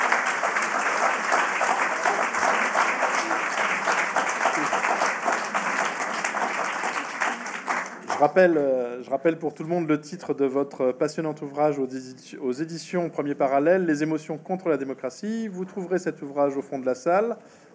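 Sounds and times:
applause: 0:00.0 - 0:08.6
speech: 0:08.2 - 0:17.7.

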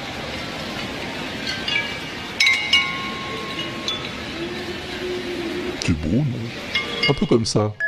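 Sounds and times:
flowing water hiss: 0:00.0 - 0:07.8
porcelain bowls clinking on flowing water: 0:01.3 - 0:04.4, 0:06.6 - 0:07.5
speech: 0:05.9 - 0:07.8.

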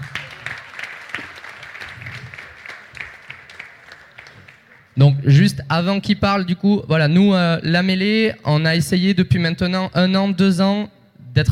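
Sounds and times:
audience applause at a student startup pitch competition: 0:00.0 - 0:05.0
speech: 0:05.0 - 0:11.5.

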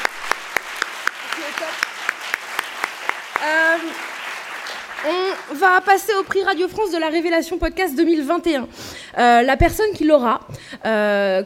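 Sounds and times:
audience applause: 0:00.0 - 0:06.7
speech: 0:05.0 - 0:11.4.

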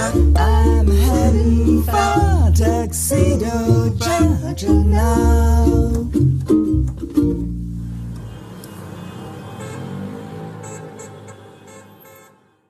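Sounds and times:
speech: 0:00.1 - 0:06.3
car horn honks: 0:07.8 - 0:12.6.

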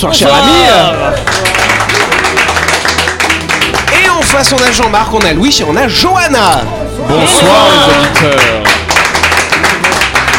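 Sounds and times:
speech: 0:00.0 - 0:02.5, 0:04.3 - 0:08.8
people applauding themselves: 0:00.3 - 0:05.5, 0:07.4 - 0:10.3.

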